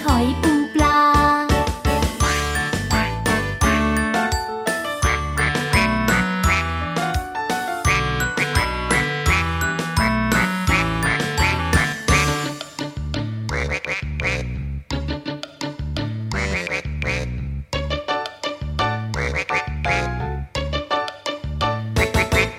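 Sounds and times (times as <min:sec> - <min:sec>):
bouncy steady musical backing: 0:00.0 - 0:22.5
voiced imitations of duck quacks: 0:05.1 - 0:06.8, 0:07.9 - 0:12.5, 0:13.5 - 0:14.6, 0:16.3 - 0:17.4, 0:19.2 - 0:20.2, 0:22.0 - 0:22.5.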